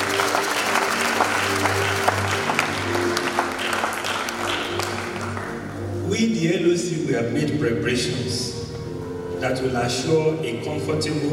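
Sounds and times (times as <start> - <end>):
audience clapping: 0.0 - 5.9
speech: 6.4 - 8.6, 9.4 - 11.3.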